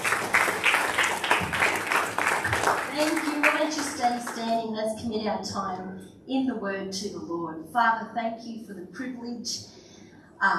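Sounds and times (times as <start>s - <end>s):
church congregation applauding to welcome a speaker to the morning service: 0.0s - 4.4s
speech: 4.0s - 9.8s, 10.4s - 10.5s.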